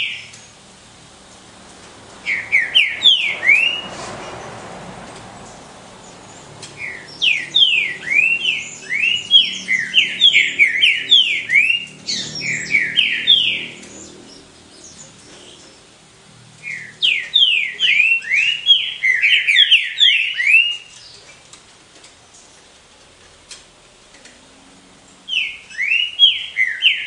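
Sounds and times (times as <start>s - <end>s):
Green-winged saltator singing: 2.2s - 4.7s, 5.4s - 21.4s, 25.1s - 27.0s.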